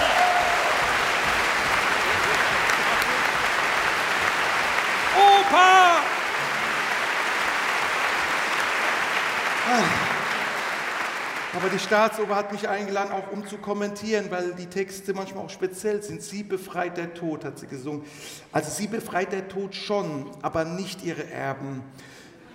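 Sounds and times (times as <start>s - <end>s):
audience applause in an opera house: 0.0s - 12.6s
speech: 5.5s - 6.1s, 11.6s - 22.2s.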